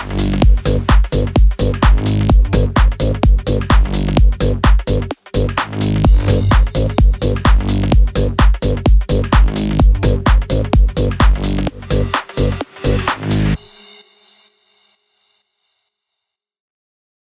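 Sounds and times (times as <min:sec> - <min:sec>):
bass house music bed in G minor at 128 BPM: 0:00.0 - 0:13.7.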